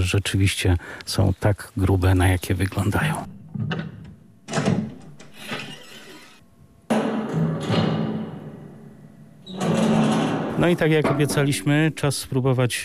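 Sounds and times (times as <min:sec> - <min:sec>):
speech: 0:00.0 - 0:04.8, 0:10.6 - 0:12.8
lock of a combat bunker door being opened: 0:03.2 - 0:08.8, 0:09.4 - 0:12.1.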